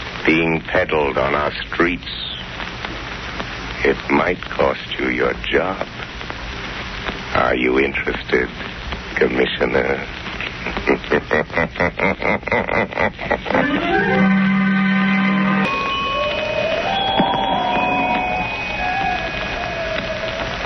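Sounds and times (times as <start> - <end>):
speech: 0.2 - 2.4, 3.8 - 6.0, 7.3 - 14.5
laughter: 10.4 - 14.3
pulsing throbbing strokes: 13.6 - 20.6
temple bells ringing: 15.4 - 20.6.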